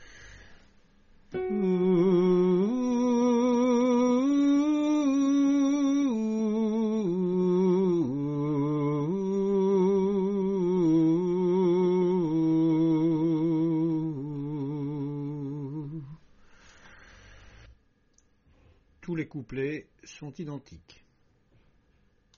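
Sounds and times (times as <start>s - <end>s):
soprano singing: 1.3s - 16.2s.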